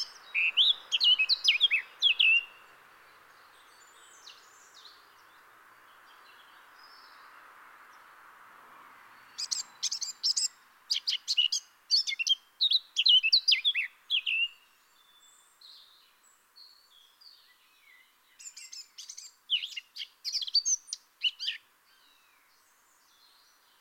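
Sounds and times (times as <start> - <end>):
Eurasian blackcap singing: 0.0 - 2.6, 9.3 - 22.3.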